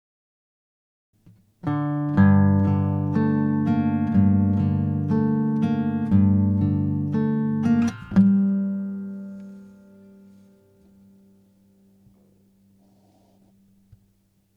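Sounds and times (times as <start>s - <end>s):
guitar motif: 1.6s - 12.5s.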